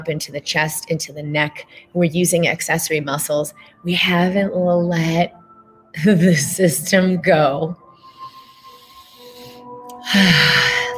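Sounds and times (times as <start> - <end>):
speech: 0.0 - 7.8, 10.0 - 10.7
deep inhaled breath: 7.9 - 10.9.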